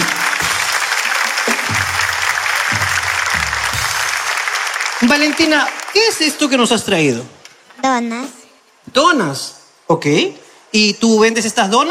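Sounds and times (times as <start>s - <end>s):
audience applause: 0.0s - 6.6s
speech: 5.0s - 11.8s.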